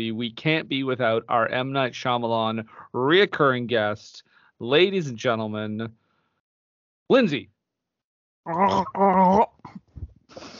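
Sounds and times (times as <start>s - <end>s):
speech: 0.0s - 6.0s, 7.1s - 7.5s, 8.4s - 10.5s
person imitating drowning with gargling: 8.5s - 9.8s.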